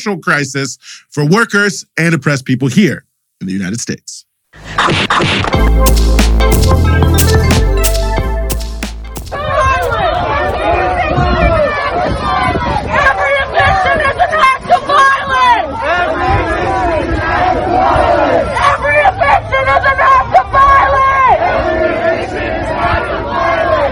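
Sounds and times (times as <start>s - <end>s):
speech: 0.0s - 7.8s
crowd babble: 4.6s - 23.8s
Kansas City Tenants Union protesters chanting while blocking eviction court: 9.2s - 23.8s.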